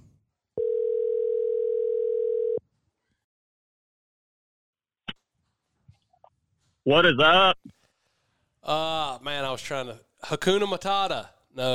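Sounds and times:
telephone ringback tone on an outgoing call: 0.6s - 2.6s
speech: 6.8s - 7.8s, 8.7s - 11.7s.

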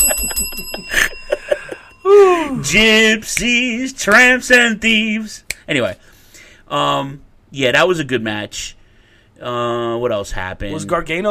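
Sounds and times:
bicycle-style bell ringing: 0.0s - 3.2s
speech: 2.6s - 6.1s, 6.7s - 8.8s, 9.4s - 11.2s.

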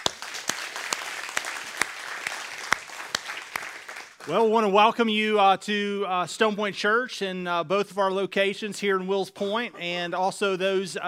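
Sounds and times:
church congregation applauding: 0.0s - 4.7s
speech: 4.2s - 11.0s.

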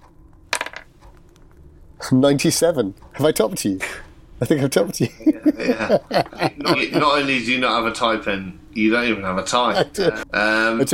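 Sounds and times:
dice rattling in a luck roll for a tabletop roleplaying game: 0.5s - 0.9s
speech: 2.1s - 10.9s
laughter: 4.8s - 7.6s, 9.5s - 10.3s.

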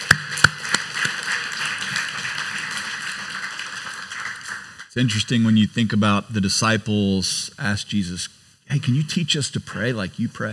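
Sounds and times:
audience applause: 0.0s - 5.0s
speech: 5.0s - 10.5s.

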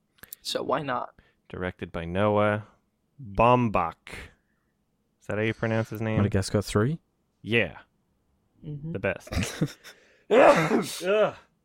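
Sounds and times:
speech: 0.4s - 4.3s, 5.3s - 7.9s, 8.6s - 11.4s
loud voiced sneeze: 10.3s - 11.1s.

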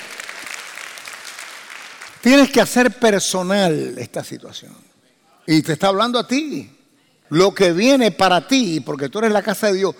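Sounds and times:
audience applauding: 0.0s - 2.2s
speech: 2.2s - 4.9s, 5.5s - 9.9s.

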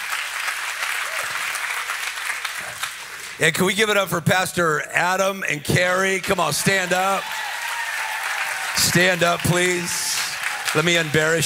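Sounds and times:
clapping: 0.0s - 3.4s, 6.2s - 11.4s
speech: 3.4s - 7.4s, 8.8s - 10.1s, 10.8s - 11.4s.

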